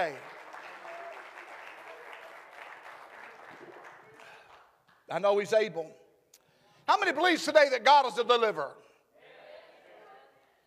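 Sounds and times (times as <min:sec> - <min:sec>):
speech: 0:00.0 - 0:00.3, 0:05.1 - 0:06.0, 0:06.9 - 0:08.8
audience clapping hands: 0:00.0 - 0:05.1.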